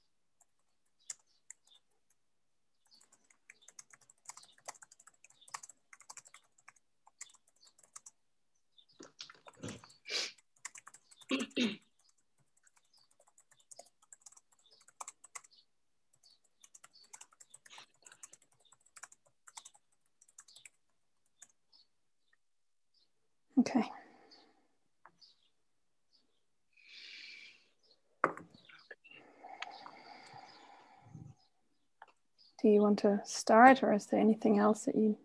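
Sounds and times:
typing a chat message on a computer keyboard: 0.4 - 2.2, 2.8 - 8.2, 9.0 - 21.6
speech: 32.6 - 35.2.

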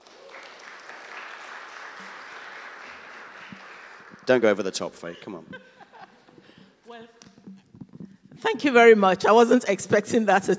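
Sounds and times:
crowd clapping: 0.0 - 5.3
speech: 4.3 - 5.8, 8.4 - 10.5
laughter: 4.9 - 6.5.

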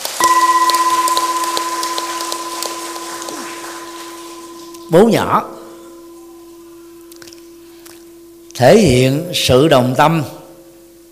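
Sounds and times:
crowd applause: 0.0 - 4.7
electronic hum or feedback tone: 0.0 - 11.1
speech: 4.9 - 5.6, 8.6 - 10.4.

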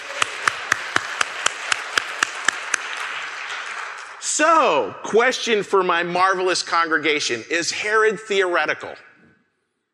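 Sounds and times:
audience round of applause: 0.0 - 4.3
speech: 4.4 - 9.1.

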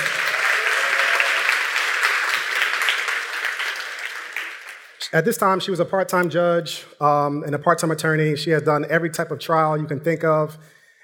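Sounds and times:
crowd applause: 0.0 - 5.1
speech: 5.1 - 10.8.

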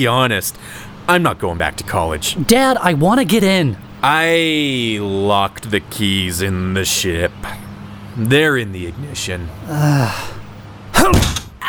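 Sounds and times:
speech: 0.0 - 7.6, 8.2 - 10.4
short falling vocal strain: 9.6 - 11.6
fist striking a window: 11.0 - 11.6.

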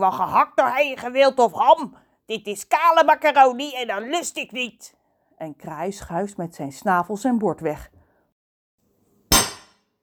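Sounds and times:
speech: 0.0 - 8.0
spoon banged against a cooking pan: 9.3 - 9.8.

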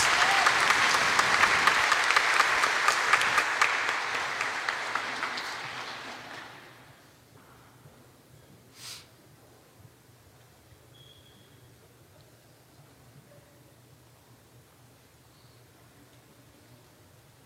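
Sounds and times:
audience clapping for the graduating class at a parish service: 0.0 - 7.0.

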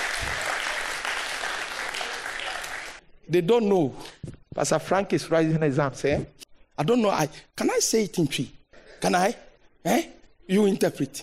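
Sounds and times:
crowd applause: 0.0 - 3.0
speech: 3.3 - 11.2.

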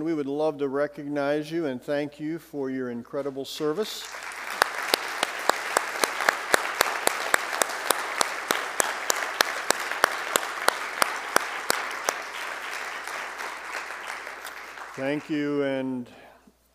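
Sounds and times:
speech: 0.0 - 4.3, 15.0 - 16.2
audience applause: 4.0 - 15.6
crisp rhythmic clap: 4.0 - 15.8.

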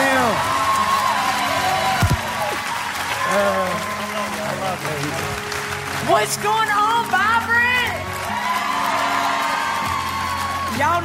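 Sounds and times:
whoops and cheers: 0.0 - 4.4, 7.9 - 11.0
live audience clapping: 0.0 - 11.0
speech: 6.2 - 7.3, 10.8 - 11.0.

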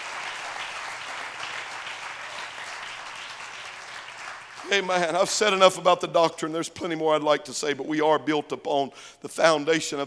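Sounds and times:
audience clapping: 0.0 - 5.8
speech: 4.6 - 10.0.

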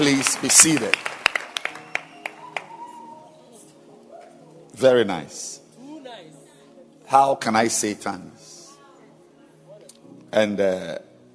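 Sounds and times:
speech: 0.0 - 1.2, 4.8 - 5.6, 7.1 - 8.5, 10.3 - 11.1
church audience hand claps: 0.0 - 3.0.

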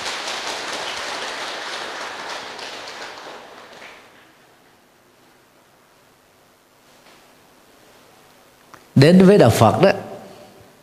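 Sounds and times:
large crowd applauding: 0.0 - 4.4
speech: 9.0 - 10.1.

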